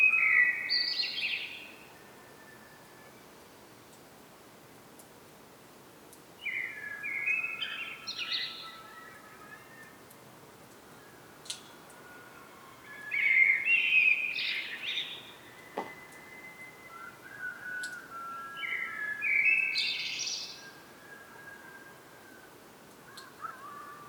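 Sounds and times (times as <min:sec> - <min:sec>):
common blackbird fluty song phrases: 0:00.0 - 0:01.7, 0:06.4 - 0:09.9, 0:11.1 - 0:21.9.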